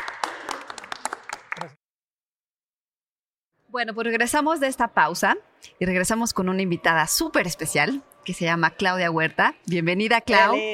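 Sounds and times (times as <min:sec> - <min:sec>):
audience applause: 0:00.0 - 0:01.8
speech: 0:01.6 - 0:01.8, 0:03.7 - 0:10.7.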